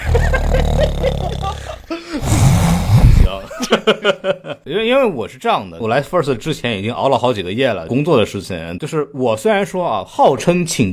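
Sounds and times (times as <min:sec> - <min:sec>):
laughter: 0:00.0 - 0:02.2, 0:03.1 - 0:04.7
person imitating snoring: 0:00.0 - 0:03.4
speech: 0:03.8 - 0:10.9.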